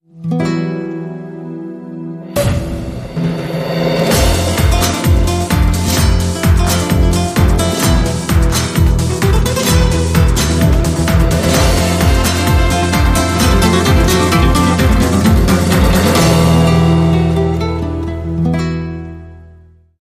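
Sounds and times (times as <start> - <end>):
flamenco music: 0.2 - 19.6.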